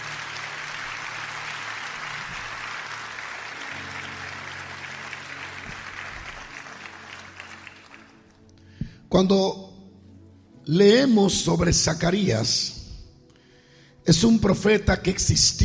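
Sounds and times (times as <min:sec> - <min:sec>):
loud audience applause: 0:00.0 - 0:08.4
speech: 0:09.1 - 0:09.6, 0:10.7 - 0:12.8, 0:14.1 - 0:15.6.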